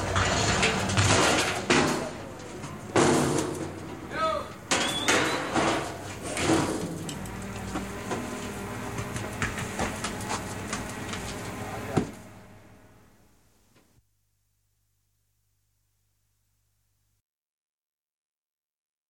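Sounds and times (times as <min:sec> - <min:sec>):
municipal garbage truck: 0:00.0 - 0:13.2.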